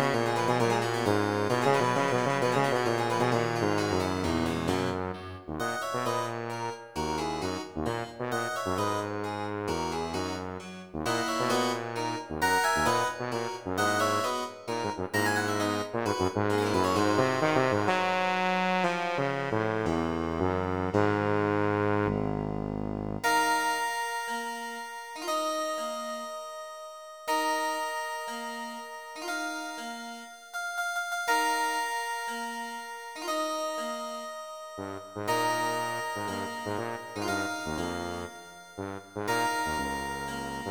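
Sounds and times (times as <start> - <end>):
tuba: 0.0 - 23.7, 34.8 - 40.6
chiptune music: 0.0 - 23.9, 27.7 - 40.6
harpsichord: 0.0 - 26.3, 27.3 - 40.6.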